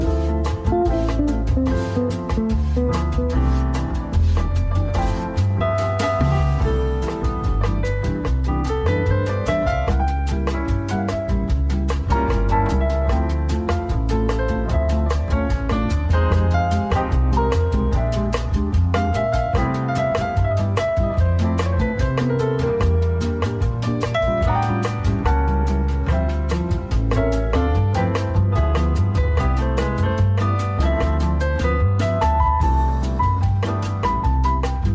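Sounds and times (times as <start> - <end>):
bossa nova music: 0.0 - 34.9.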